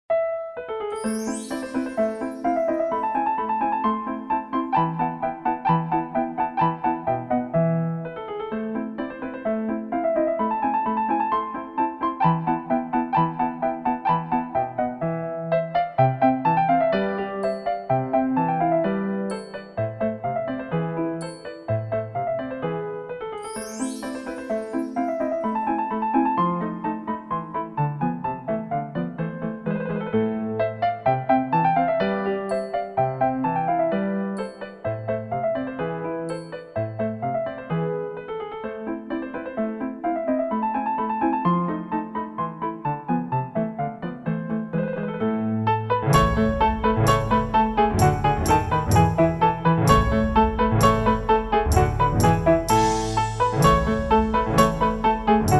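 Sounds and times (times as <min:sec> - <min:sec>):
piano sonata in A major: 0:00.1 - 0:55.5.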